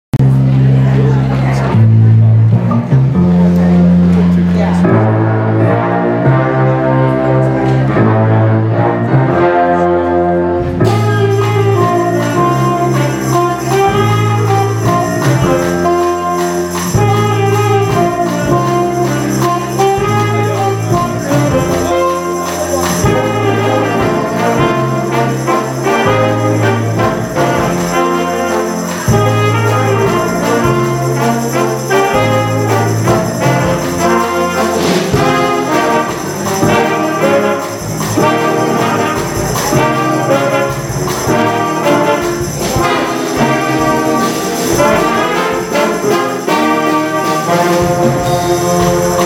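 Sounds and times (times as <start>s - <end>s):
senior high jazz band playing: 0.2s - 49.2s.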